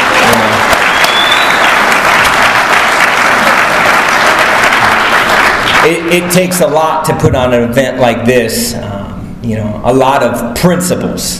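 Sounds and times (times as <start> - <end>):
crowd applauding: 0.0 - 6.5
speech: 5.8 - 11.3.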